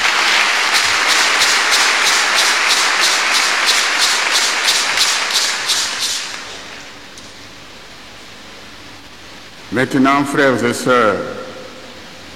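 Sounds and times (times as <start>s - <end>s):
audience applause: 0.0s - 6.9s
speech: 9.7s - 11.4s.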